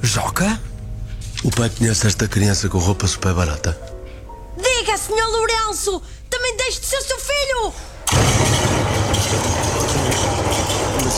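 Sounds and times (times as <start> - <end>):
speech: 0.0 - 0.7, 1.4 - 3.9, 5.0 - 8.4
thunder rumble sound effect: 8.0 - 11.1.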